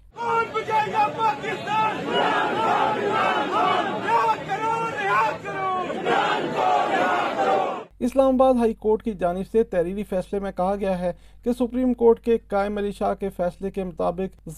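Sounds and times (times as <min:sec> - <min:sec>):
lawyers chanting slogans in celebration: 0:00.1 - 0:07.9
speech: 0:08.0 - 0:14.5.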